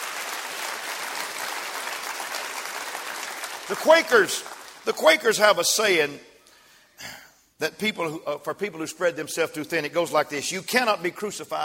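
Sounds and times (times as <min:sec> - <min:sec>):
audience clapping hands: 0:00.0 - 0:05.5
speech: 0:03.7 - 0:06.3, 0:07.0 - 0:11.6.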